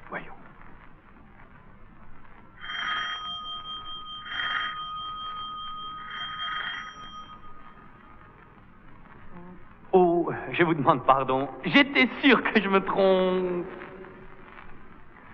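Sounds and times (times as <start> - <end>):
doorbell ringing: 2.6 - 8.6
speech: 10.4 - 13.9.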